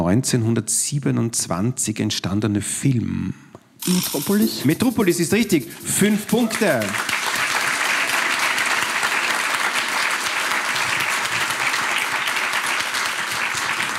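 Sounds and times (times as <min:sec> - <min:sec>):
speech: 0:00.1 - 0:07.1
studio audience applause: 0:06.0 - 0:13.9.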